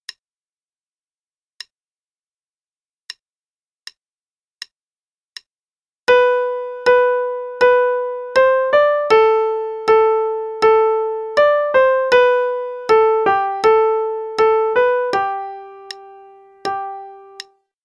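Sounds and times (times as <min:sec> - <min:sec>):
right hand march melody at quarter note 80: 0:06.1 - 0:17.4.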